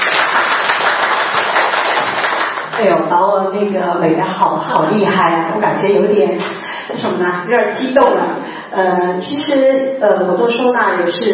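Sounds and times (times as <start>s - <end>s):
warm audience applause welcoming a home-organization teacher to the stage: 0.0s - 2.8s
speech: 2.8s - 11.3s.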